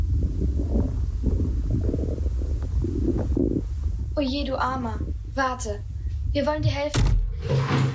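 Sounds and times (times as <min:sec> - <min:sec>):
stomach growling with hunger: 0:00.1 - 0:03.9
speech: 0:04.2 - 0:07.8.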